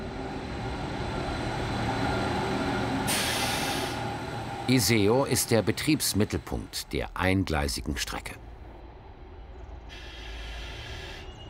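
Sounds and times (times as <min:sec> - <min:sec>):
train rumbling into a station: 0:00.0 - 0:11.4
hissing air of train brakes releasing: 0:03.0 - 0:04.2, 0:09.9 - 0:11.4
speech: 0:04.7 - 0:08.5.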